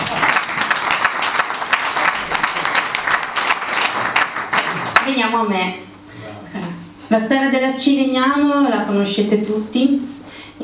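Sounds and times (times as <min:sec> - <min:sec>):
audience applause: 0:00.0 - 0:05.3
speech: 0:05.3 - 0:05.8, 0:07.1 - 0:10.6.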